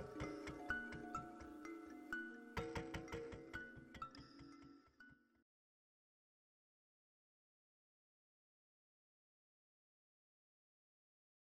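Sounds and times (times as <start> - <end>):
chime: 0.0 - 5.3.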